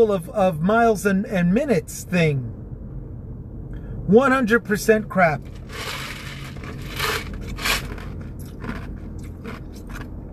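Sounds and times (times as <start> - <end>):
speech: 0.0 - 2.6, 4.1 - 6.0
person chomping on ice from a soda: 5.6 - 10.1.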